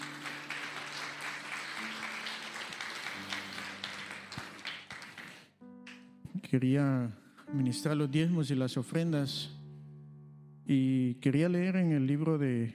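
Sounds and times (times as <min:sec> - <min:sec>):
audience applause: 0:00.0 - 0:05.5
speech: 0:06.5 - 0:09.6, 0:10.7 - 0:12.7.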